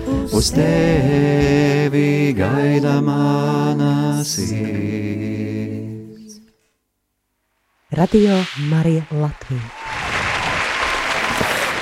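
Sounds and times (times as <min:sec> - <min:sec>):
speech: 0:00.3 - 0:05.8, 0:08.0 - 0:09.8
crowd clapping: 0:09.7 - 0:11.8.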